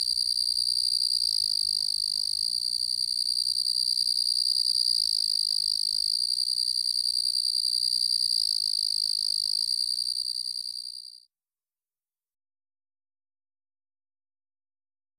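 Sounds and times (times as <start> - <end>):
Carolina ground cricket Eunemobius carolinus chirping: 0.0 - 11.2.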